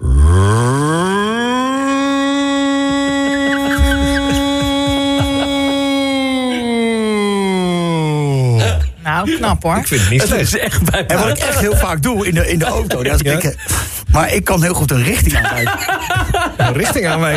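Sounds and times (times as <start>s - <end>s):
voice imitating an air raid siren: 0.0s - 8.5s
laughter: 2.5s - 17.3s
speech: 9.2s - 17.3s.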